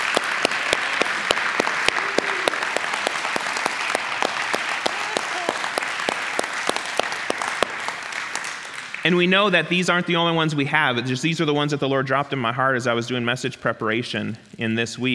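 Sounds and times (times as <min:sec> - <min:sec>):
audience applause: 0:00.0 - 0:09.3
speech: 0:09.1 - 0:15.1.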